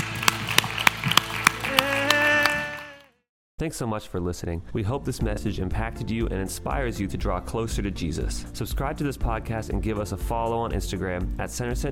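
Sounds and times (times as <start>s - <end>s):
church audience clapping in a steady rhythm: 0.0s - 3.2s
speech: 3.6s - 11.8s.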